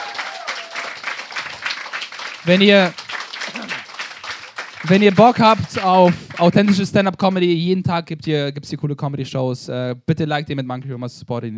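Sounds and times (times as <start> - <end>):
loud high vocal whoop: 0.0 - 1.2
audience applause: 0.0 - 7.4
speech: 2.4 - 3.0, 4.9 - 11.5.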